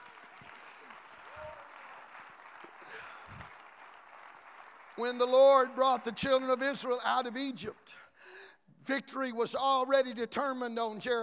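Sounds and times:
audience clapping hands: 0:00.0 - 0:07.9
speech: 0:05.0 - 0:08.0, 0:08.8 - 0:11.2.

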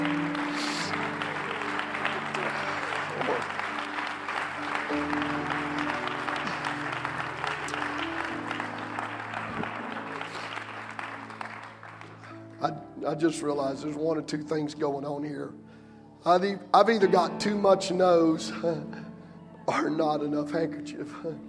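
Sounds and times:
audience clapping: 0:00.0 - 0:13.0
sustained keyboard chords: 0:00.0 - 0:21.4
speech: 0:13.1 - 0:19.0, 0:19.7 - 0:21.4.

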